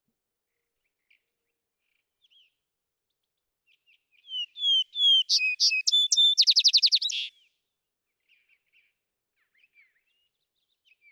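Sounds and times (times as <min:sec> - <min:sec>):
vesper sparrow singing: 0:04.3 - 0:07.3.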